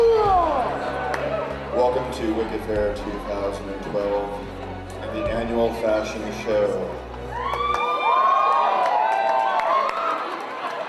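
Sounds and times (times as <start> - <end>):
audience applause: 0.0 - 1.8, 7.2 - 10.8
speech: 1.9 - 7.1.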